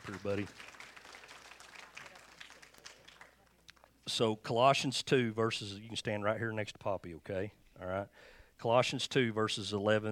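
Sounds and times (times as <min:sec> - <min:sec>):
crowd audience clapping hands: 0:00.0 - 0:03.9
speech: 0:00.1 - 0:00.8, 0:04.1 - 0:10.1.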